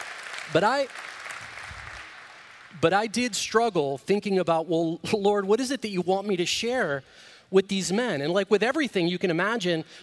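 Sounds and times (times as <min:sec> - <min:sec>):
audience applause: 0:00.0 - 0:02.8
speech: 0:00.5 - 0:01.0, 0:02.7 - 0:10.0.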